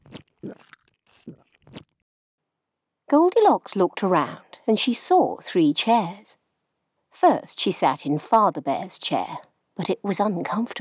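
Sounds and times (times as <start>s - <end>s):
eating a bowl of porridge: 0.0s - 2.0s
speech: 3.1s - 6.4s, 7.2s - 10.7s.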